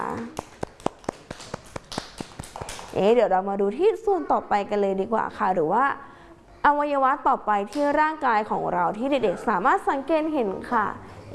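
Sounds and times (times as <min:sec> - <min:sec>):
speech: 0:00.0 - 0:00.6, 0:02.9 - 0:11.3
crisp hand claps: 0:00.0 - 0:03.0.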